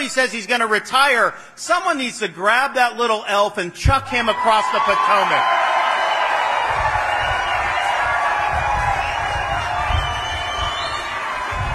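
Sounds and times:
speech: 0.1s - 5.7s
cheers and whoops: 4.3s - 11.7s
large audience applause: 4.9s - 11.7s.

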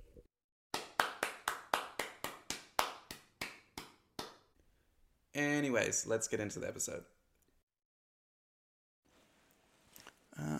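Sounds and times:
single pair of hands clapping: 0.7s - 4.5s
speech: 5.4s - 7.2s.

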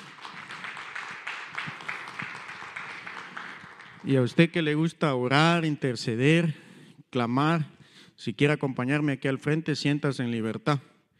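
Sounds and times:
audience applause: 0.0s - 4.4s
speech: 4.0s - 10.9s.

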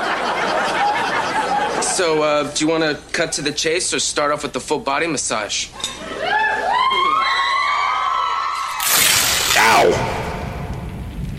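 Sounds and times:
laughter: 0.0s - 2.2s, 5.8s - 7.5s
speech: 2.0s - 6.2s
Fox studio audience screaming and cheering: 6.2s - 10.7s.

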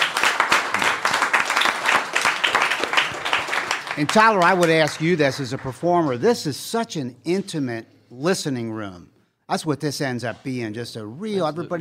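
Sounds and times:
small audience applauding in an intimate listening room: 0.0s - 6.0s
speech: 4.0s - 11.8s.

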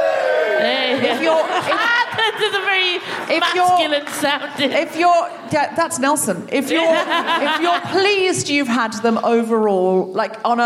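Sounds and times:
higher shouts in a crowd: 0.0s - 2.5s
crowd cheering and whooping: 0.0s - 3.8s
laughter: 0.4s - 5.8s, 6.6s - 8.4s
speech: 1.0s - 10.6s.

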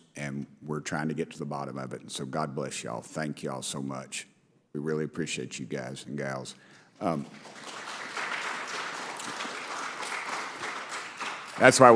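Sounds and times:
speech: 0.3s - 7.8s, 11.6s - 11.9s
audience clapping: 7.0s - 11.9s.

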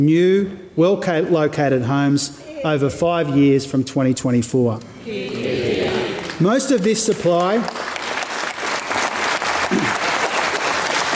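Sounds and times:
speech: 0.0s - 5.5s, 6.4s - 8.0s
applause during budget speech: 6.2s - 11.1s.

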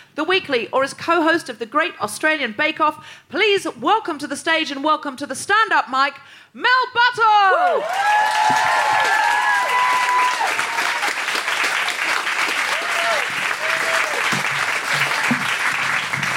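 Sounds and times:
speech: 0.2s - 9.8s
audience clapping and cheering: 7.6s - 16.3s.

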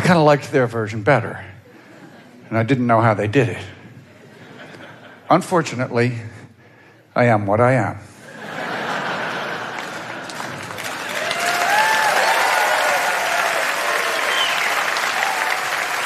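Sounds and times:
speech: 0.1s - 1.6s, 2.5s - 3.8s, 5.3s - 6.4s, 7.2s - 8.6s
laughter: 1.6s - 2.9s, 3.5s - 5.5s, 8.2s - 12.4s
audience applause: 9.0s - 16.0s.

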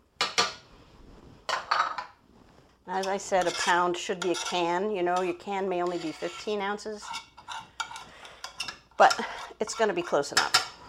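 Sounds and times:
speech: 2.9s - 7.3s, 9.0s - 10.6s
spoon scraping and knocking against a mixing bowl while stirring eggs into muffin batter: 2.9s - 10.8s.

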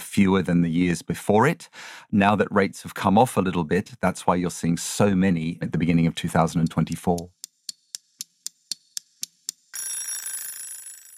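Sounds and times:
speech: 0.2s - 7.4s
timer alarm ringing: 9.7s - 11.1s.

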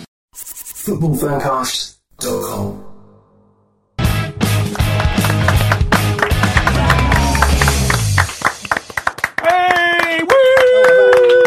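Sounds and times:
speech: 0.8s - 2.8s
applause: 4.5s - 11.4s.

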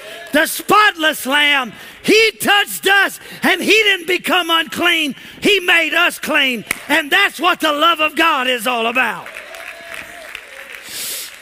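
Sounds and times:
audience clapping hands: 0.0s - 0.8s, 6.6s - 6.9s, 8.7s - 11.3s
speech: 0.3s - 9.4s.

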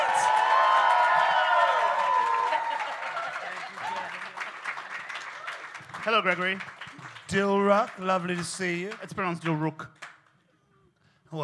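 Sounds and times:
audience cheering at a live comedy show: 0.0s - 4.5s
audience applause at a live comedy show: 0.0s - 10.5s
speech: 6.0s - 10.0s.

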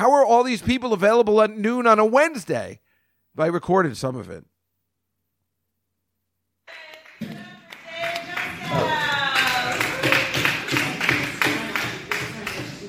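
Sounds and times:
speech: 0.0s - 2.8s, 3.4s - 4.5s
smattering of applause: 6.7s - 12.8s.

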